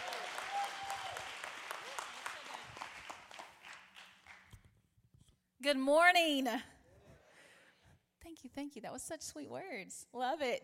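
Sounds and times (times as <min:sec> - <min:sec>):
audience clapping to welcome a kids' pastor onstage: 0:00.0 - 0:04.7
speech: 0:05.6 - 0:06.7, 0:08.4 - 0:10.6.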